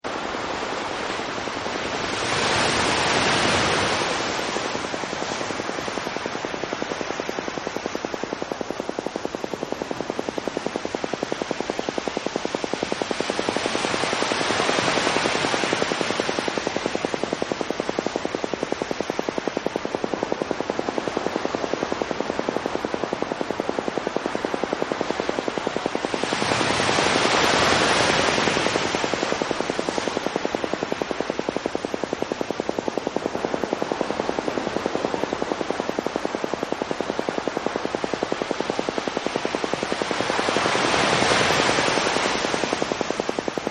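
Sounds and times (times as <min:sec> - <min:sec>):
ocean: 0:00.0 - 0:43.6.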